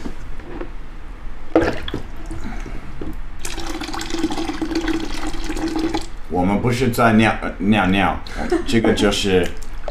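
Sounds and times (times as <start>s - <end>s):
hot water poured into a bucket for a foot soak: 3.4s - 6.1s
speech: 6.4s - 9.6s.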